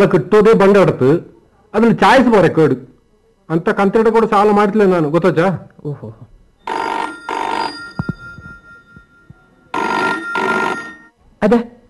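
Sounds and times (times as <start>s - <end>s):
speech: 0.0s - 2.9s, 3.5s - 6.8s, 11.4s - 11.8s
telephone bell ringing: 6.6s - 11.1s.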